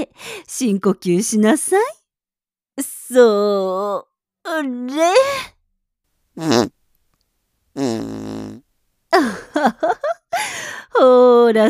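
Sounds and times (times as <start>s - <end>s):
speech: 0.1s - 2.0s, 2.8s - 5.5s, 6.4s - 6.8s, 7.8s - 8.3s, 9.1s - 11.6s
fart: 6.4s - 6.8s, 7.8s - 8.6s.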